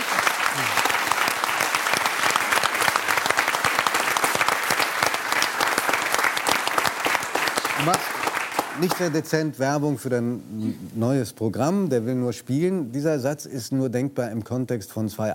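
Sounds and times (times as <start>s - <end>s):
studio audience applause: 0.0s - 9.4s
speech: 0.6s - 0.8s, 7.8s - 8.2s, 8.8s - 15.3s.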